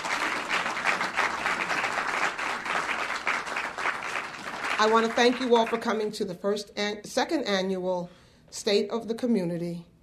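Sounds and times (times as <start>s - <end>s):
round of applause: 0.0s - 5.9s
speech: 4.8s - 9.9s.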